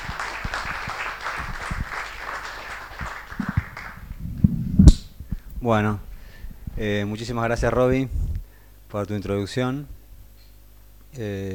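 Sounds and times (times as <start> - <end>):
audience applause: 0.0 - 4.3
speech: 5.6 - 6.1, 6.8 - 8.2, 8.9 - 10.0, 11.1 - 11.5.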